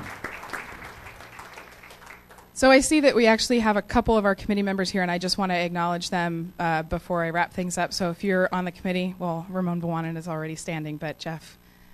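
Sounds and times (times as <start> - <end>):
audience applause: 0.0 - 2.5
speech: 2.6 - 11.6.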